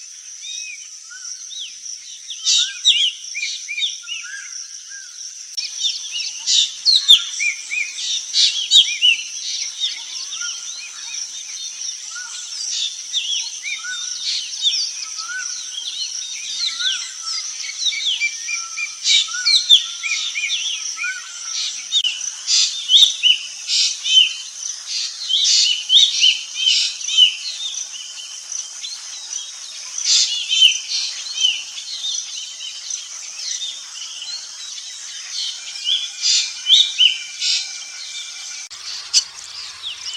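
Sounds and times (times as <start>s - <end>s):
birds singing: 0.0s - 40.1s.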